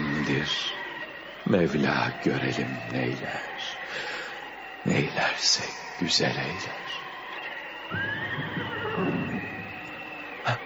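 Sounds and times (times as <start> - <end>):
speech: 0.2 - 0.8, 1.4 - 4.2, 4.8 - 6.8, 7.9 - 8.6
horse neighing: 8.0 - 9.6.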